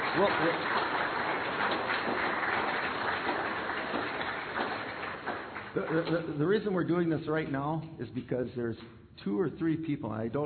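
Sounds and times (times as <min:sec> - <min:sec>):
audience applause for graduates: 0:00.0 - 0:06.2
speech: 0:00.2 - 0:00.9, 0:01.6 - 0:02.5, 0:05.8 - 0:10.4.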